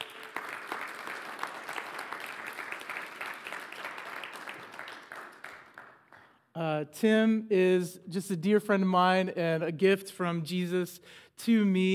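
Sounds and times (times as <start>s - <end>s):
audience applause at a Sunday church service: 0.0s - 6.2s
speech: 6.6s - 11.9s.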